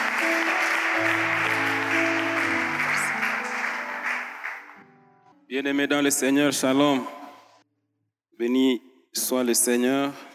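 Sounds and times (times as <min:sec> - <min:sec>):
audience applause: 0:00.0 - 0:04.8
speech: 0:05.6 - 0:07.2, 0:08.4 - 0:10.3.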